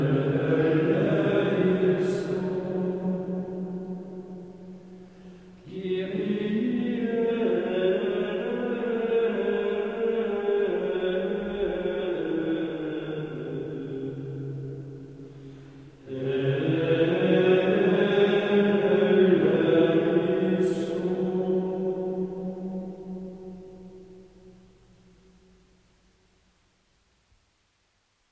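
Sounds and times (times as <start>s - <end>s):
choir of monks singing Gregorian chant: 0.0s - 4.8s, 5.6s - 15.1s, 16.0s - 24.2s.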